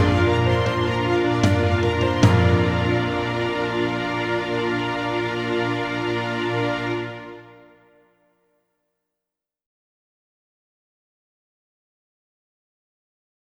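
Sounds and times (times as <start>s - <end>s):
clarinet: 0.0s - 7.7s.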